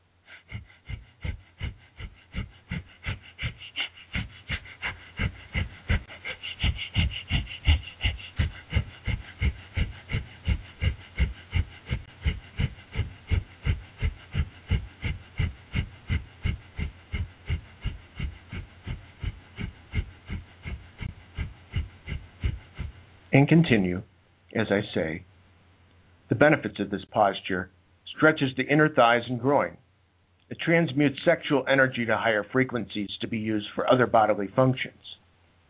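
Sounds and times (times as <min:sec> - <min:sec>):
rapid forceful nasal breaths for a breath of fire exercise: 0:00.0 - 0:24.0
speech: 0:23.4 - 0:25.3, 0:26.3 - 0:29.8, 0:30.5 - 0:35.2.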